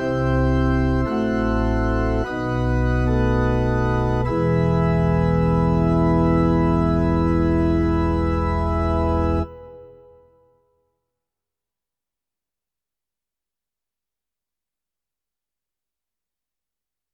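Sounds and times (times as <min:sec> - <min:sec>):
church organ demo song on a digital piano: 0:00.0 - 0:10.3.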